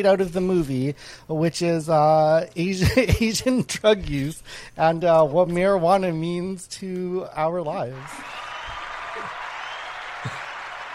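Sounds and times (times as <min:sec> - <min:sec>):
speech: 0:00.0 - 0:08.4
applause sound effect: 0:08.2 - 0:10.9.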